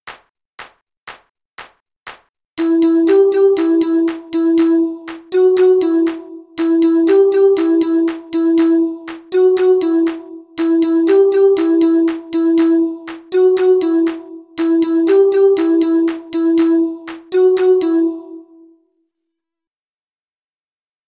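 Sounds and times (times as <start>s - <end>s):
music loop: 0.1s - 18.2s.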